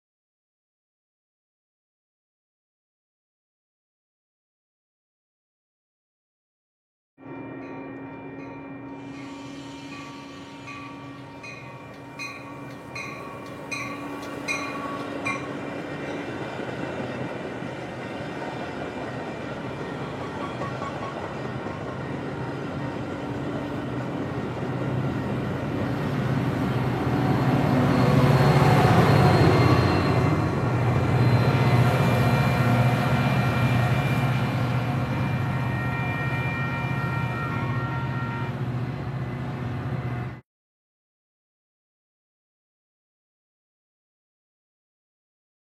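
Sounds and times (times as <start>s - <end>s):
train moving on tracks: 7.2s - 40.4s.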